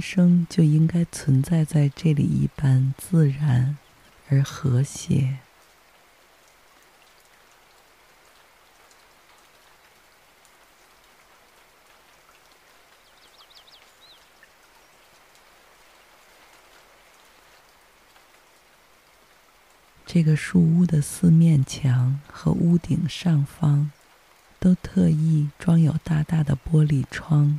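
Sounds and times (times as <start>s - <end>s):
speech: 0.0s - 5.4s, 20.2s - 24.0s, 24.6s - 27.5s
rain falling: 0.0s - 27.5s
bird chirp: 13.0s - 14.9s.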